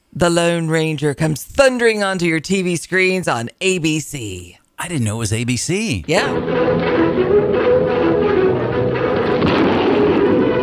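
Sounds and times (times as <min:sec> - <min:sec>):
speech: 0:00.2 - 0:07.6
gunfire from a TV show opening: 0:06.4 - 0:10.6.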